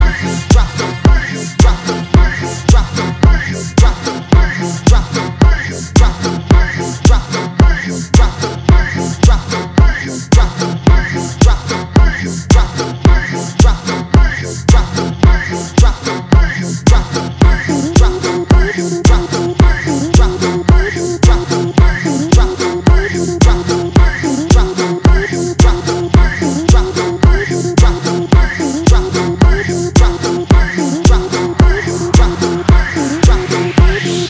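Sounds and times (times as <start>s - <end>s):
bass drop: 0.0s - 34.2s.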